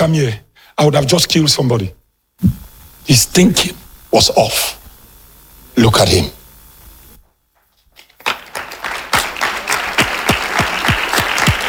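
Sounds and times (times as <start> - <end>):
speech: 0.0 - 4.8, 5.8 - 6.4
audience clapping: 7.6 - 11.6.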